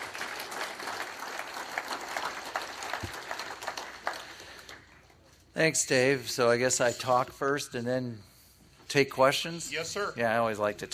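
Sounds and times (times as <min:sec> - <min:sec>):
audience applause: 0:00.0 - 0:05.0
speech: 0:05.6 - 0:08.3, 0:08.9 - 0:10.9.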